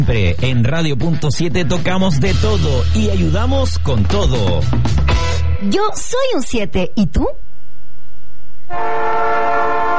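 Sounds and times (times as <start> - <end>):
speech: 0.0 - 7.5, 8.7 - 9.3
train horn: 8.7 - 9.9.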